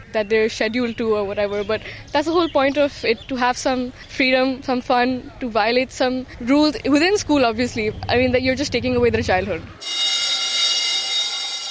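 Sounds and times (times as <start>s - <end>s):
speech: 0.1s - 10.2s
electric school bell ringing: 9.8s - 11.7s.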